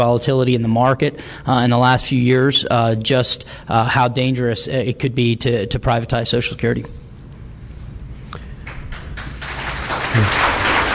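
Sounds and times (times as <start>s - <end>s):
speech: 0.0s - 7.0s, 10.1s - 10.4s
audience applause: 8.6s - 10.9s.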